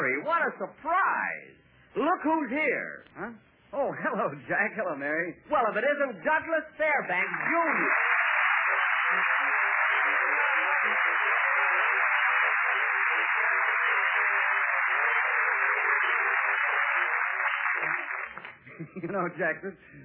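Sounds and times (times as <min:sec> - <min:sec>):
speech: 0:00.3 - 0:08.2, 0:19.0 - 0:20.0
restaurant audience applause: 0:07.0 - 0:18.6.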